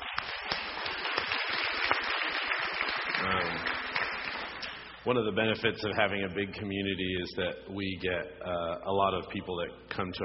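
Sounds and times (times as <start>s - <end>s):
crowd applauding for the band: 0.0s - 5.0s
speech: 5.0s - 10.2s.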